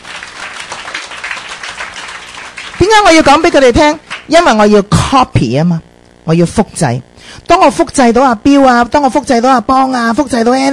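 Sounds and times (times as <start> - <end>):
audience applause for diamond-rank members at a meeting: 0.0 - 4.3
speech: 2.9 - 10.7.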